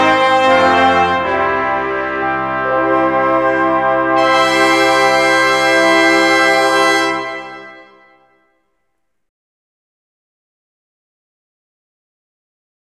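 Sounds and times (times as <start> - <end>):
fanfare: 0.0 - 8.5.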